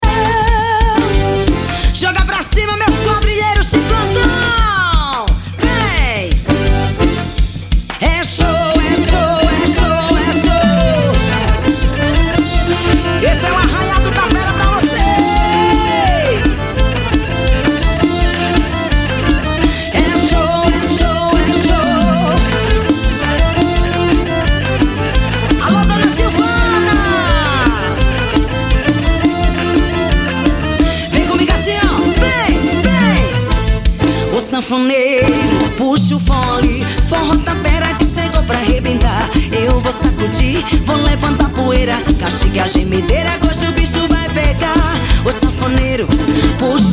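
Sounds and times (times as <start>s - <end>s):
arrasta pe forro music: 0.0s - 46.9s.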